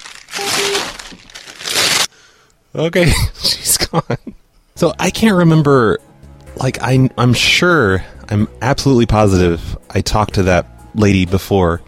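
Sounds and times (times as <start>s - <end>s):
paper loan documents being ripped into pieces: 0.0s - 2.1s
speech: 2.8s - 11.8s.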